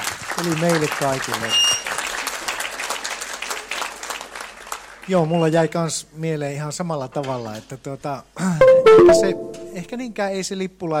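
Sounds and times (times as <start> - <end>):
audience applause: 0.0 - 5.0
speech: 0.4 - 1.7, 5.1 - 10.9.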